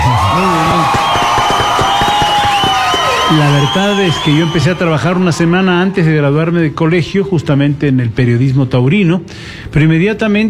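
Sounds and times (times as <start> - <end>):
audience applause: 0.0 - 6.3
speech: 3.3 - 10.4.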